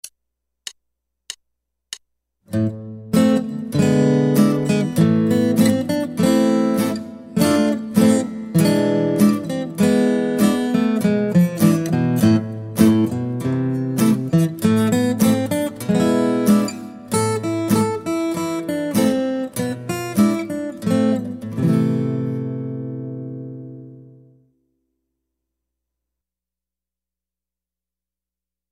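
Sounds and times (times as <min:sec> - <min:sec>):
guitar: 0:02.5 - 0:25.0.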